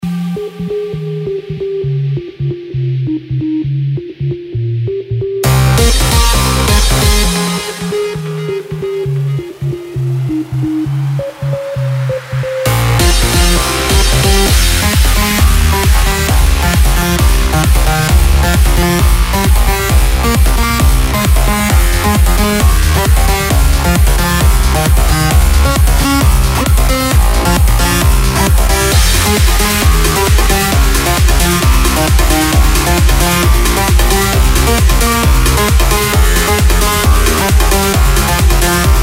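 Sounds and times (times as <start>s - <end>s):
cosmic electro house music: 0.0s - 39.0s.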